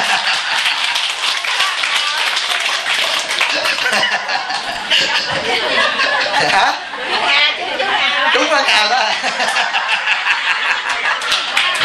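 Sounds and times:
audience clapping at a Buddhist Dharma talk: 0.0s - 4.7s, 10.6s - 11.8s
people chuckling and laughing: 0.0s - 11.8s
speech: 6.4s - 6.8s.

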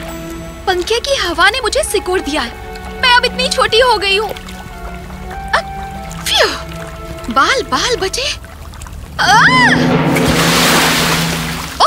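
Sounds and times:
speech: 0.7s - 4.5s, 7.3s - 8.4s, 9.2s - 10.2s
splash of falling into water: 8.7s - 11.8s.

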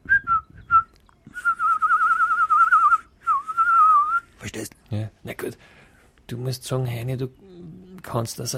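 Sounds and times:
person whistling bird-like calls: 0.0s - 4.4s
speech: 6.4s - 7.4s, 8.1s - 8.5s.

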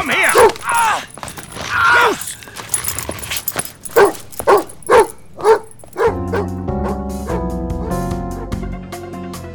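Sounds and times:
dog barking: 0.2s - 0.7s, 3.9s - 8.6s.

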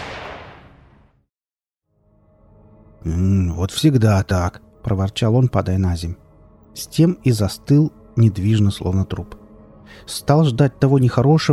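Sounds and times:
bullet whizzing past: 0.0s - 1.1s
gunshot: 0.0s - 1.1s
speech: 3.0s - 6.2s, 6.8s - 11.5s.

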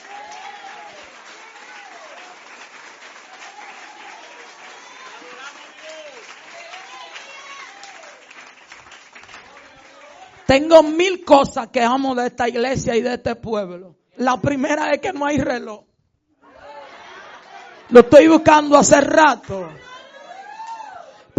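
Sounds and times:
audience applauding: 0.0s - 10.5s
speech: 10.5s - 15.9s, 17.9s - 19.9s
laughter: 16.4s - 18.0s.

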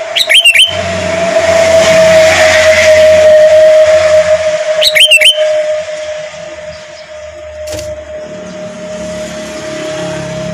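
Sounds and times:
sooty-headed bulbul whistled notes: 0.1s - 0.9s, 1.6s - 7.9s.

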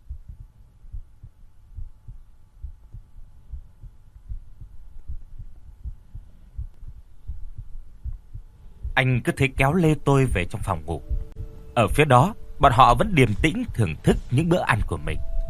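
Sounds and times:
rapid pounding heartbeat: 0.0s - 9.0s, 10.3s - 11.6s
speech: 9.0s - 11.1s, 11.8s - 15.3s.

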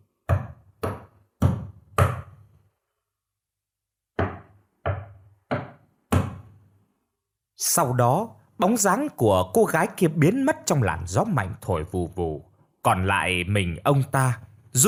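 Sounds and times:
knocking on a door: 4.2s - 6.5s
speech: 7.6s - 14.8s.

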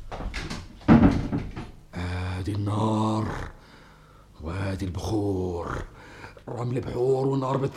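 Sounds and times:
wooden door being pulled shut with knocks and clunks: 0.2s - 1.9s
speech: 2.5s - 3.5s, 4.7s - 5.9s, 6.5s - 7.7s.

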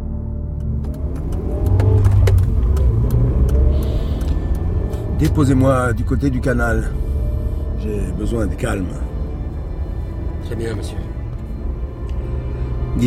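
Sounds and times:
car engine running and driving off: 0.2s - 13.0s
sharp clicks and knocks: 0.5s - 5.3s
speech: 5.3s - 7.1s, 7.9s - 9.1s, 10.5s - 11.1s.

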